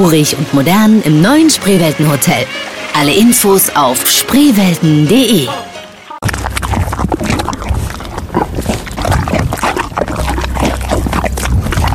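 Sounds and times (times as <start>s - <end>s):
speech: 0.0s - 5.8s
horse chewing a banana with wet smacking: 6.2s - 11.9s.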